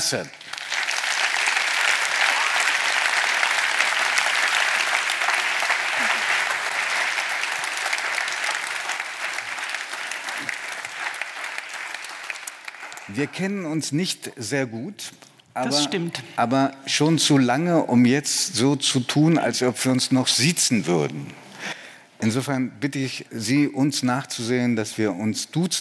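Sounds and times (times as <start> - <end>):
speech: 0.0 - 0.4, 13.1 - 21.5, 22.2 - 25.7
audience applause: 0.0 - 13.4.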